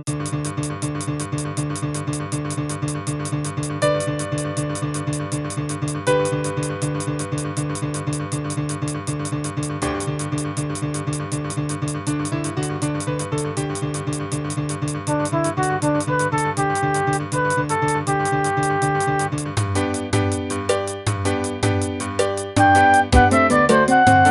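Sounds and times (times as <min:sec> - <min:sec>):
recorder dance melody: 0:00.1 - 0:24.2.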